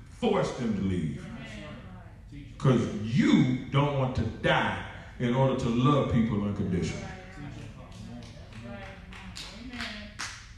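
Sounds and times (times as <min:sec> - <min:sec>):
speech: 0:00.2 - 0:01.7, 0:02.6 - 0:07.2
hand claps: 0:07.8 - 0:10.5.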